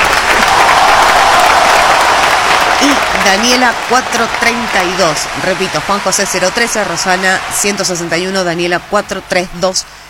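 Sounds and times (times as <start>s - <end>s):
applause sound effect played on radio: 0.0s - 7.8s
speech: 3.2s - 10.0s.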